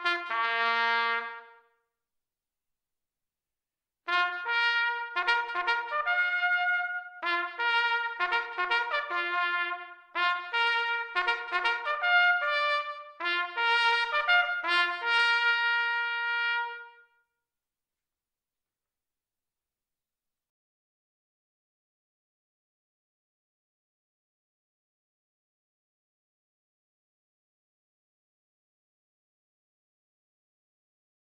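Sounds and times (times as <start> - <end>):
war trumpets: 0.0 - 1.7, 4.1 - 17.2.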